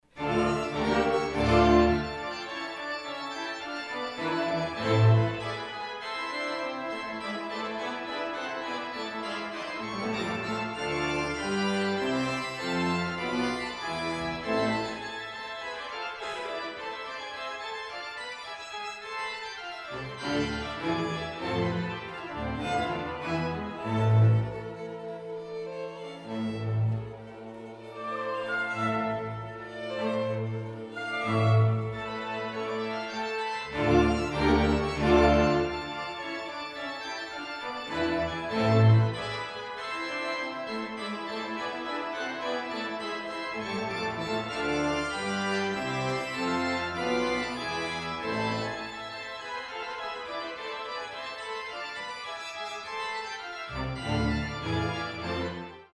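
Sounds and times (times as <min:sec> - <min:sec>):
organ: 0:00.1 - 0:55.9.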